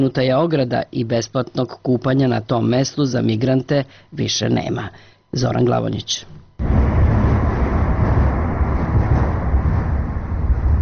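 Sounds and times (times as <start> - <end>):
speech: 0.0 - 6.7
traffic rumble from the Old Sava Bridge: 6.6 - 10.7.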